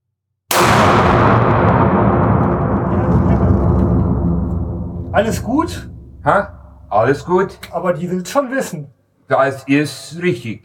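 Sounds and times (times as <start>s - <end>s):
gunshot from a shouldered gun fired at the upper target: 0.5s - 7.8s
speech: 5.2s - 10.6s.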